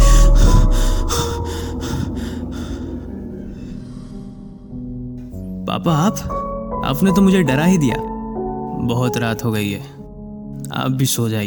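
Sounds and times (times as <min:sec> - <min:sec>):
rapid panicked breathing: 0:00.0 - 0:05.5
speech: 0:05.8 - 0:08.1, 0:08.8 - 0:10.0, 0:10.7 - 0:11.4.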